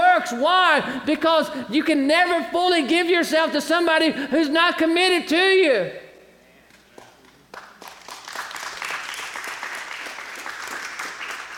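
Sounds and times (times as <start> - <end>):
speech: 0.3 - 6.0
audience applause: 7.0 - 11.5.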